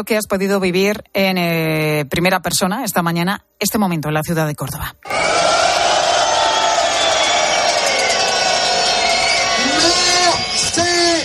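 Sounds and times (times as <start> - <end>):
speech: 0.0 - 5.5
protesting farmers booing: 5.1 - 11.2
whistles: 6.2 - 11.2.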